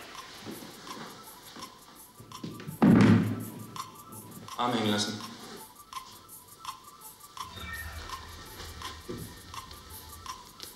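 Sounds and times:
chair tipping over backwards onto the floor: 2.8s - 3.4s
speech: 4.6s - 5.3s.

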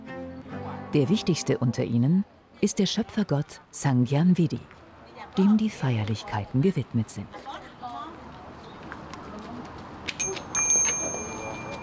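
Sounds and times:
speech: 0.9s - 4.8s, 5.4s - 7.6s
priest ringing a small ritual bell: 10.2s - 11.8s.

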